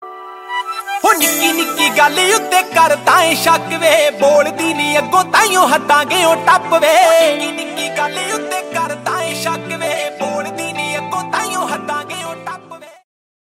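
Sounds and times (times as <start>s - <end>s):
Punjabi ringtone: 0.0s - 12.9s.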